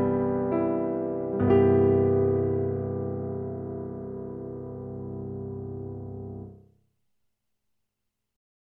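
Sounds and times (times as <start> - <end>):
digital concert piano playing: 0.0 - 6.6.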